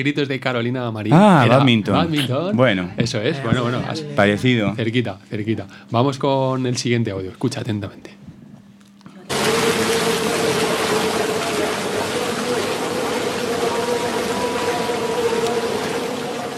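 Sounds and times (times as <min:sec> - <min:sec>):
speech: 0:00.0 - 0:08.3
canoe paddling through rushing water: 0:09.3 - 0:16.5.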